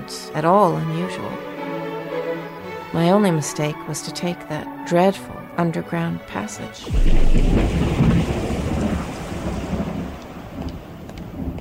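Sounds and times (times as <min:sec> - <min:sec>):
speech: 0:00.1 - 0:01.5, 0:02.9 - 0:07.9
deep rolling thunder: 0:06.9 - 0:11.6
steady rain: 0:06.9 - 0:11.6.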